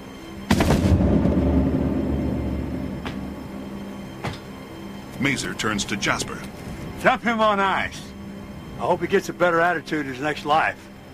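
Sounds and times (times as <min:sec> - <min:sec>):
gunshot effect in an audio drama: 0:00.5 - 0:03.4
speech: 0:05.2 - 0:08.1, 0:08.8 - 0:10.9.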